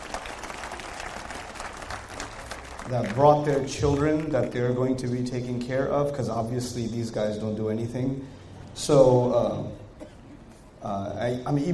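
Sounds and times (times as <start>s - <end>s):
audience applause for the mothers: 0.0s - 4.6s
speech: 2.9s - 9.8s, 10.8s - 11.7s.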